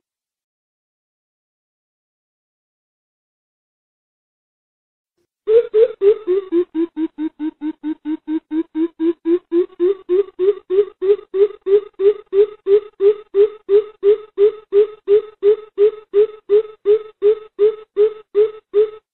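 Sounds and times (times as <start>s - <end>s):
greater coucal booming hoots: 5.5s - 19.0s.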